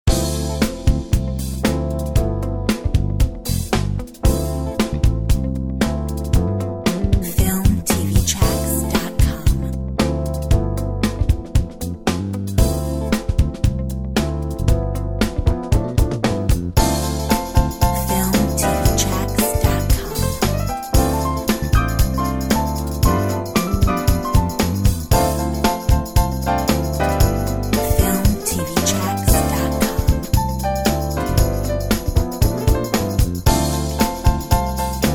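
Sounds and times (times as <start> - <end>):
soul jazz music: 0.0 - 35.1.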